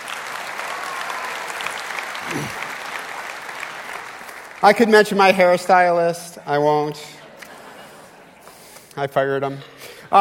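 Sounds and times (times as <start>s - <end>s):
audience applause: 0.0s - 5.2s
speech: 4.6s - 7.2s, 9.0s - 10.2s.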